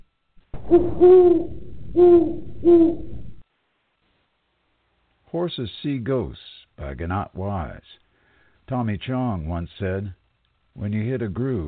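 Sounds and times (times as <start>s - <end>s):
owl hooting: 0.6s - 3.4s
speech: 0.7s - 3.1s, 5.3s - 8.0s, 8.7s - 10.2s, 10.8s - 11.6s.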